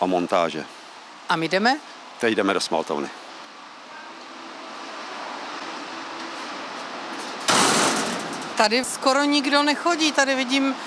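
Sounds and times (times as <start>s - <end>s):
speech: 0.0s - 3.2s, 8.6s - 10.8s
rail-mounted cart passing in enamelling plant: 3.5s - 10.8s.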